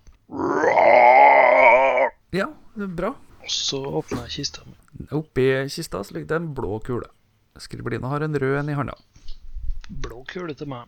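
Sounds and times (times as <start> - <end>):
person imitating a bear growl: 0.3 - 2.2
speech: 2.3 - 9.1, 9.9 - 10.8.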